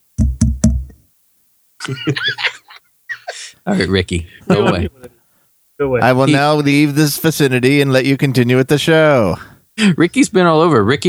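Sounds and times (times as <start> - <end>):
firm plastic toy knocking on a microphone: 0.2 - 1.0
speech: 1.8 - 2.5, 3.6 - 5.2, 5.8 - 11.0
laughter: 1.8 - 5.2.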